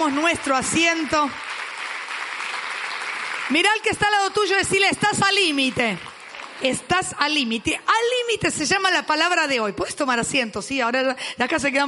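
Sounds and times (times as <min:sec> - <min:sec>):
speech: 0:00.0 - 0:01.5, 0:03.5 - 0:11.8
audience applauding: 0:00.0 - 0:06.8.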